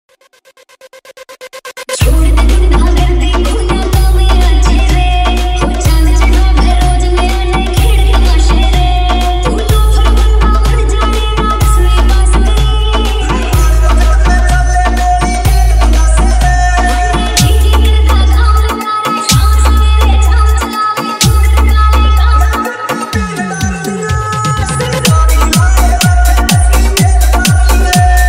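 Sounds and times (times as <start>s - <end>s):
DJ remix with high bass vibration: 0.1s - 28.2s.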